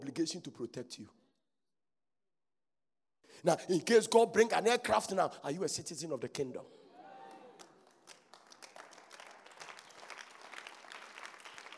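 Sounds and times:
speech: 0:00.2 - 0:01.2, 0:03.4 - 0:06.8
audience clapping: 0:07.2 - 0:11.7.

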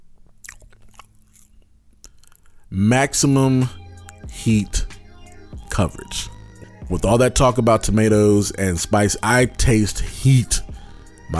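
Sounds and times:
biting buffalo cauliflower coated in El Yucateco hot sauce: 0:00.2 - 0:02.6
speech: 0:02.7 - 0:03.8, 0:04.4 - 0:04.9, 0:05.8 - 0:10.6.

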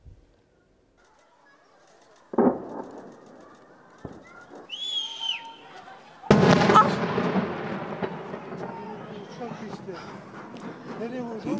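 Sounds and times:
voices talking: 0:00.6 - 0:11.5
distant airstrike explosion booms: 0:02.3 - 0:03.4, 0:06.3 - 0:11.5.

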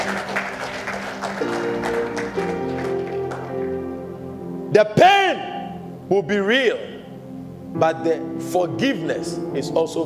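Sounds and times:
audience clapping: 0:00.0 - 0:03.9
speech: 0:04.8 - 0:05.1, 0:06.1 - 0:07.0, 0:07.7 - 0:10.0.

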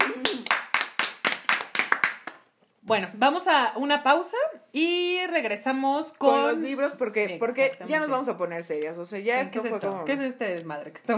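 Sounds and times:
applause, hands clapping: 0:00.0 - 0:02.5
speech: 0:02.9 - 0:11.1.

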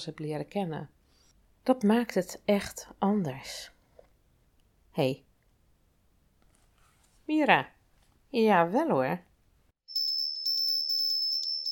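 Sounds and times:
speech: 0:00.0 - 0:01.0, 0:01.6 - 0:03.8, 0:05.0 - 0:05.3, 0:07.3 - 0:09.3
small bell ringing: 0:09.9 - 0:11.7.

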